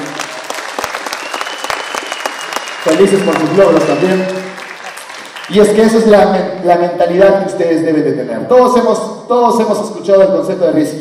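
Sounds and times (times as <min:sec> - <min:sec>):
applause: 0:00.0 - 0:06.1
speech: 0:02.8 - 0:04.5, 0:05.5 - 0:10.9.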